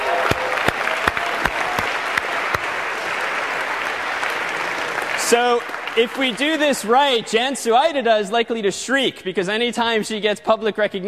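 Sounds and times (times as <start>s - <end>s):
audience applause: 0.0s - 7.4s
speech: 5.3s - 11.0s.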